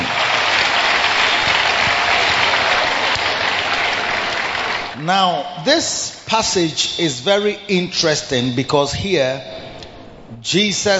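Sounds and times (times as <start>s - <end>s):
audience clapping: 0.0s - 5.4s
speech: 5.1s - 9.6s, 10.3s - 10.9s.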